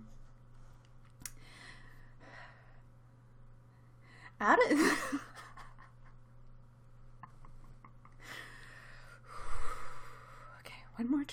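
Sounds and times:
person laughing: 4.6s - 6.3s, 7.2s - 8.5s.

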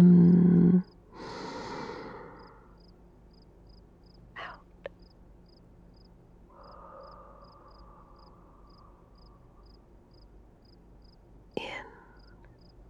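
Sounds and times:
slow breathing during a panic-attack breathing exercise: 0.0s - 2.8s, 6.5s - 10.0s.

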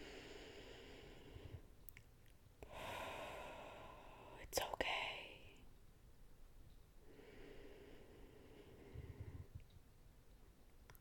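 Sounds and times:
slow deep breathing: 0.0s - 1.8s, 2.6s - 4.4s, 7.0s - 9.7s.

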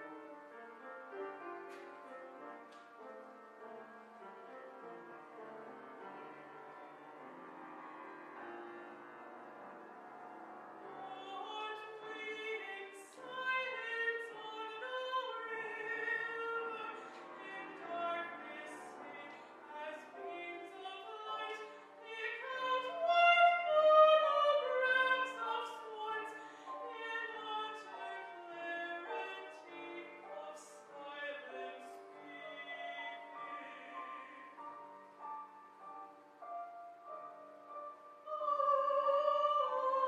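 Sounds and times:
opera singing: 10.8s - 35.1s, 38.2s - 40.0s.

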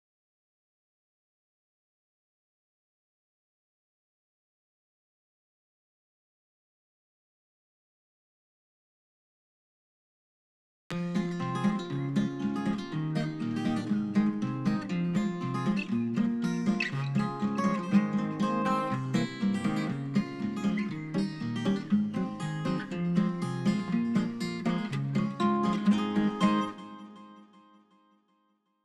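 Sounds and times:
solo guitar: 10.9s - 28.4s.

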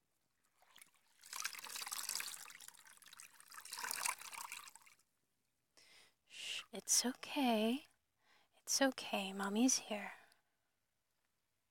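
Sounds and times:
water trickling and splashing as a mother washes her child: 0.6s - 5.0s
speech: 6.7s - 7.9s, 8.7s - 10.2s.

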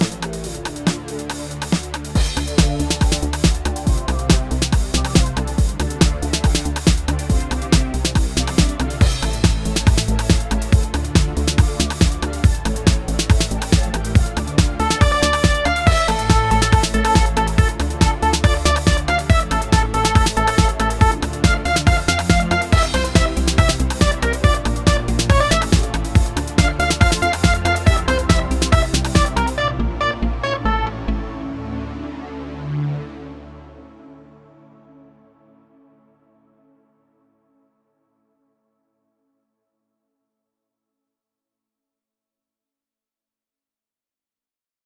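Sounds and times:
remix music: 0.0s - 33.9s.

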